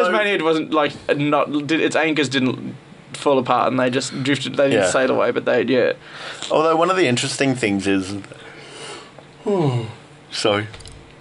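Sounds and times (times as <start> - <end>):
speech: 0.1 - 8.4, 9.4 - 10.8
person yawning: 9.4 - 10.0.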